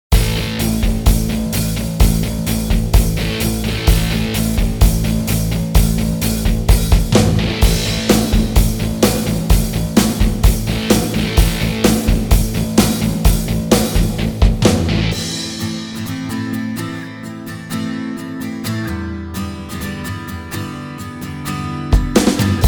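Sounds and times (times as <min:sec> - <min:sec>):
pop rock music: 0:00.1 - 0:17.1, 0:22.0 - 0:22.6.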